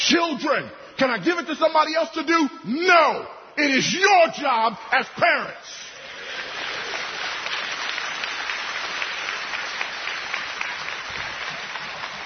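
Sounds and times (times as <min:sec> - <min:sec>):
speech: 0:00.1 - 0:05.8
crowd applause: 0:06.0 - 0:12.2.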